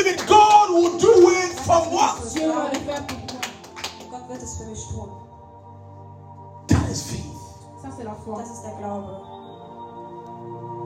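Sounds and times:
group clapping hands in rhythm: 0.0s - 4.6s
speech: 8.0s - 9.4s.

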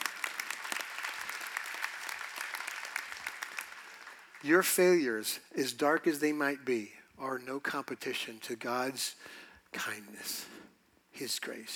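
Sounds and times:
audience clapping: 0.0s - 4.8s
speech: 4.4s - 10.6s, 11.2s - 11.7s.

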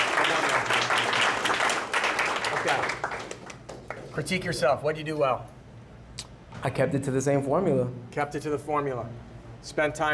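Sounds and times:
audience round of applause: 0.0s - 4.0s
speech: 2.7s - 3.0s, 4.2s - 5.6s, 6.6s - 10.1s.

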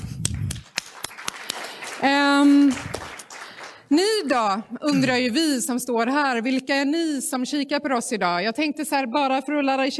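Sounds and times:
short audience applause: 0.6s - 3.9s
speech: 2.0s - 2.6s, 3.9s - 9.9s.

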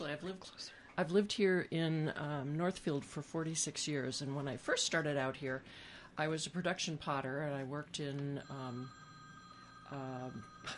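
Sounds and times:
speech: 0.1s - 9.0s, 9.9s - 10.7s
phone ringing with electronic tones: 8.4s - 10.7s.

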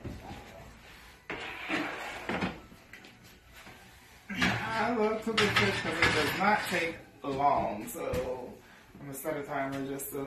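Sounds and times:
oven rack scraping: 1.3s - 2.6s, 4.3s - 7.0s
speech: 4.9s - 10.2s.

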